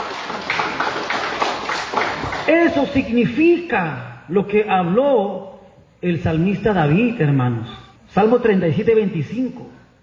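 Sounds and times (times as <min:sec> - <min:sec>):
audience applause: 0:00.0 - 0:02.6
speech: 0:02.5 - 0:10.0.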